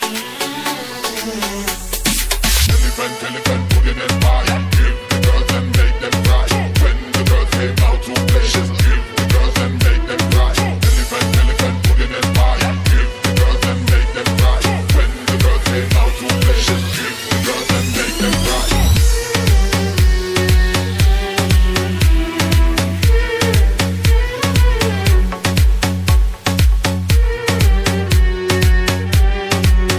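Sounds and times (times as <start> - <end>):
remix music: 0.0 - 29.9.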